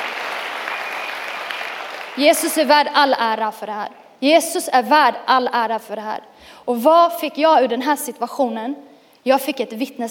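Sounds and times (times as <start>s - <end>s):
audience applause: 0.0s - 2.2s
speech: 2.2s - 10.0s.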